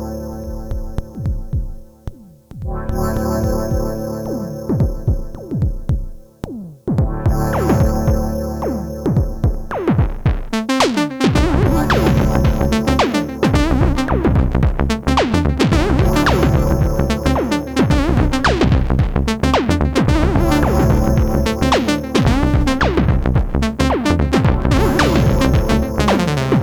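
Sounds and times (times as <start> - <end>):
jazz music: 0.2 - 26.6.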